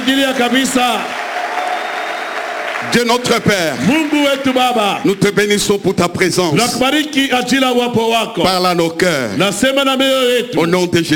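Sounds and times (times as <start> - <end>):
speech: 0.0 - 1.2, 2.8 - 11.1
church congregation applauding and cheering: 0.0 - 6.9.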